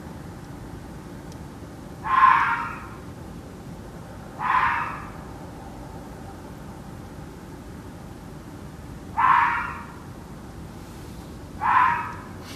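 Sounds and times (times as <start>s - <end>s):
fox barking at night: 2.0s - 3.0s, 4.4s - 5.3s, 9.1s - 10.0s, 11.6s - 12.4s.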